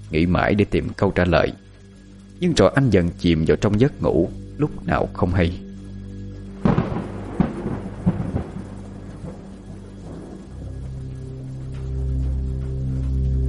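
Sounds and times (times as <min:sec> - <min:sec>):
steady hiss of rain: 0:00.0 - 0:13.4
speech: 0:00.1 - 0:01.6, 0:02.4 - 0:05.6
deep rolling thunder rumble in a night-time thunderstorm: 0:06.5 - 0:13.4
sharp thunder cracks in a night-time thunderstorm: 0:06.6 - 0:11.0.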